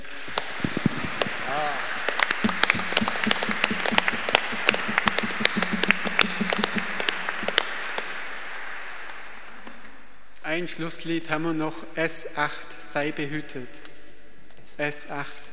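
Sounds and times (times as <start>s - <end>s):
audience applause: 0.0s - 10.3s
speech: 10.6s - 13.8s, 14.8s - 15.4s.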